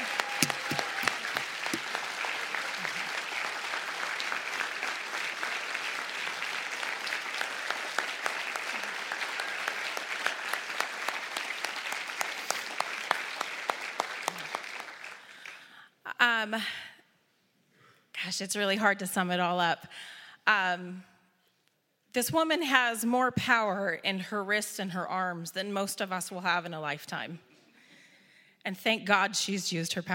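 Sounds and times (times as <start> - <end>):
audience applause: 0.0 - 15.6
speech: 16.4 - 16.8, 18.2 - 21.1, 22.1 - 27.5, 28.6 - 30.1.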